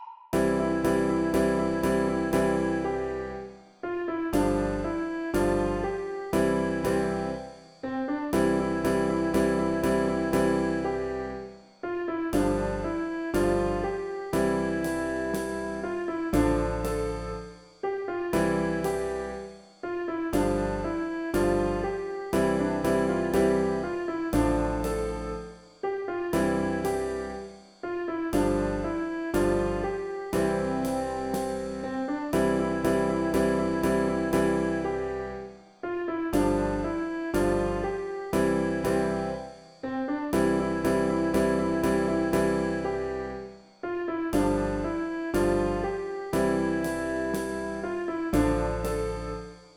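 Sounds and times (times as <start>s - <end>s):
Italian song: 0.4s - 27.5s, 28.2s - 35.4s, 36.3s - 43.5s, 44.3s - 49.4s.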